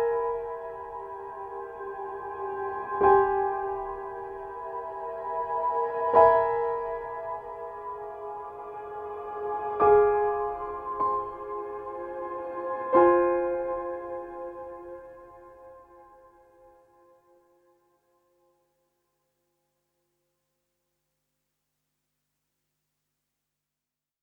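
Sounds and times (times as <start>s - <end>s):
piano: 0.0s - 18.4s.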